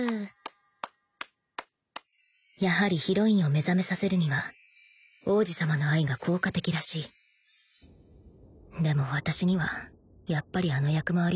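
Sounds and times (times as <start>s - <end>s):
speech: 0.0s - 0.4s, 2.6s - 4.6s, 5.2s - 7.2s, 8.8s - 11.3s
slow sparse hand clapping: 0.0s - 2.1s.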